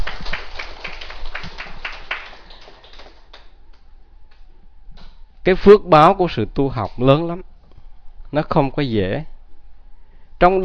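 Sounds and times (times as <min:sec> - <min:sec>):
audience applause for novice monks during a temple talk: 0:00.0 - 0:03.6
steady noise: 0:00.0 - 0:10.6
speech: 0:05.5 - 0:07.5, 0:08.3 - 0:09.3, 0:10.4 - 0:10.6.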